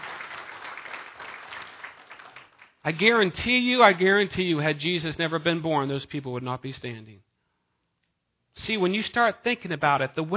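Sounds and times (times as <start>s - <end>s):
audience applause: 0.0s - 3.2s
speech: 2.8s - 7.3s, 8.6s - 10.3s.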